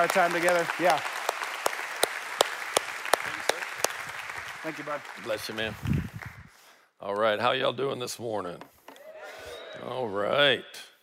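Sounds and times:
speech: 0.0s - 1.2s, 4.6s - 6.0s, 7.0s - 8.7s, 9.8s - 11.0s
audience applause for a speaker: 0.0s - 6.4s.

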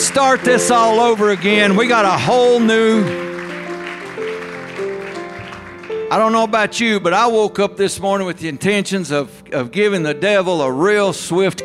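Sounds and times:
audience clapping hands: 0.0s - 6.4s
speech: 0.2s - 3.2s, 6.1s - 11.6s.

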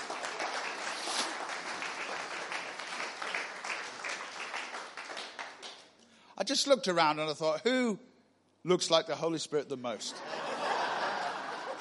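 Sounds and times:
crowd applauding: 0.0s - 5.9s
speech: 6.4s - 10.4s
laughter: 10.1s - 11.8s.

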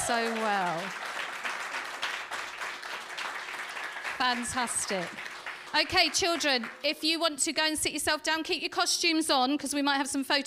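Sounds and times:
audience applause for children: 0.0s - 6.8s
speech: 0.1s - 1.1s, 4.2s - 10.4s.

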